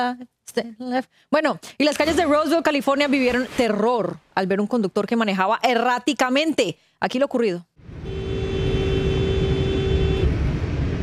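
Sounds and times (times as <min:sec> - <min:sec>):
speech: 0:00.0 - 0:08.2
car horn honking: 0:08.0 - 0:10.4.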